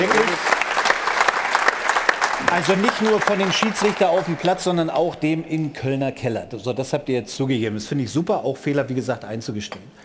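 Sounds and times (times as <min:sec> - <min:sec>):
group hand clapping: 0:00.0 - 0:05.7
speech: 0:02.5 - 0:10.0.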